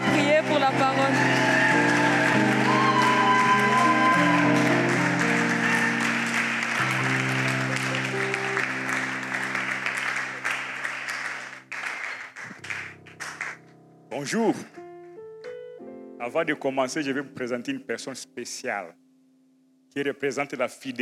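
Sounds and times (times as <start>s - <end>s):
congregation clapping to welcome an elder at a church service: 0.0s - 13.7s
sustained keyboard chords: 0.0s - 20.0s
speech: 0.7s - 1.4s, 14.2s - 14.8s, 16.2s - 19.0s, 19.9s - 21.0s.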